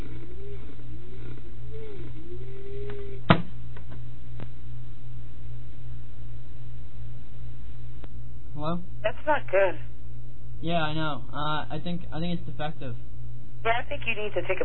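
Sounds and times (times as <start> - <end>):
wavering tone: 0.0 - 3.3
computer cooling fan whirring: 0.0 - 14.6
speech: 8.7 - 9.9, 10.6 - 14.6.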